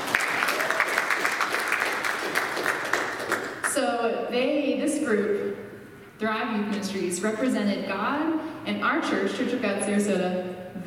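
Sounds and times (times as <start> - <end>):
audience applause: 0.0 - 3.7
speech: 4.3 - 5.6, 6.2 - 10.8.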